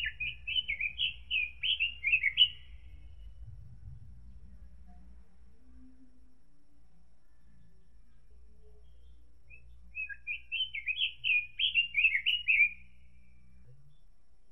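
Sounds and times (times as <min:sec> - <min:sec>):
robin singing: 0:00.0 - 0:03.3, 0:08.6 - 0:14.1.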